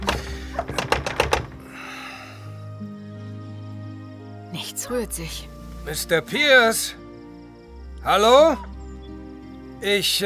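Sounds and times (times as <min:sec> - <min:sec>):
knocking on a door: 0:00.0 - 0:01.6
speech: 0:04.9 - 0:07.0, 0:08.0 - 0:08.7, 0:09.8 - 0:10.2.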